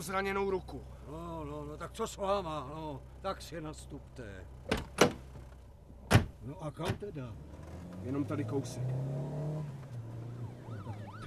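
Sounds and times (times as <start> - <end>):
speech: 0.0 - 5.1, 6.4 - 9.4
police car engine rumble: 0.0 - 11.2
police car sirens wailing: 10.0 - 11.2.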